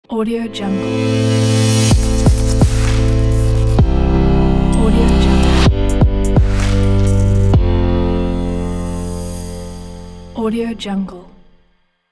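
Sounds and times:
electronic logo intro: 0.9 - 10.3.

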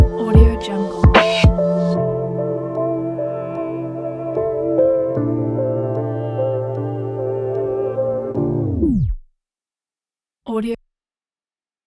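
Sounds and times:
lo-fi hip-hop music: 0.0 - 8.6.

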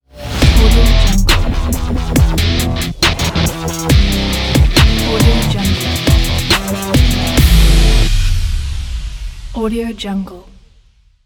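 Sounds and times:
trap metal logo intro: 0.1 - 9.7.

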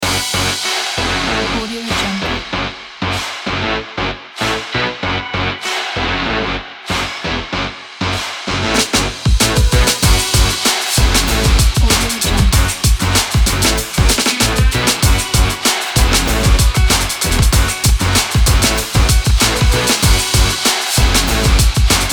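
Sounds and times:
urban hip hop background music: 0.0 - 22.1.

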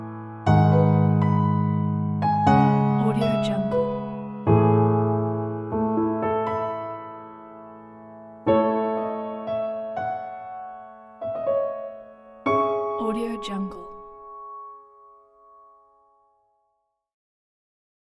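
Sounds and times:
reflective solo piano: 0.0 - 13.0.

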